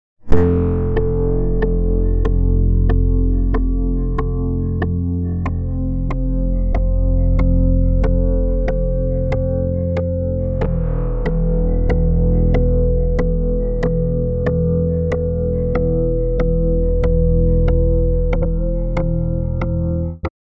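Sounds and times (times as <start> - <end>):
polyphonic synth: 0.3 - 20.2.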